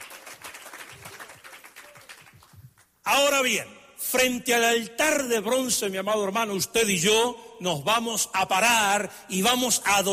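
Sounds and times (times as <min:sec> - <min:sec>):
church congregation clapping during worship: 0:00.0 - 0:03.0
speech: 0:03.1 - 0:10.1.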